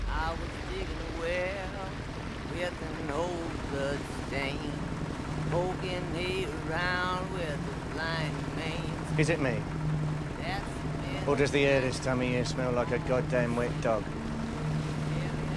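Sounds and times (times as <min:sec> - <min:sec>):
Rambo's boat engine and water drone: 0:00.0 - 0:15.5
speech: 0:09.2 - 0:09.8, 0:11.3 - 0:14.2.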